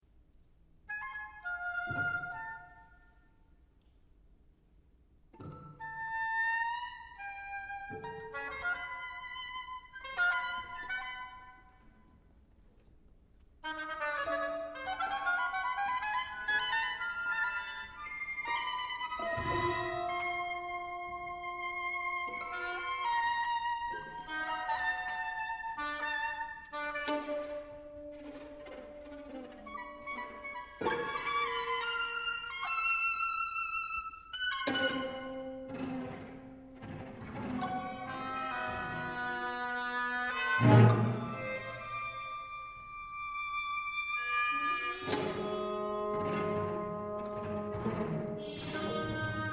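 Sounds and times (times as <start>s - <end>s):
oboe concerto: 0.7s - 49.5s.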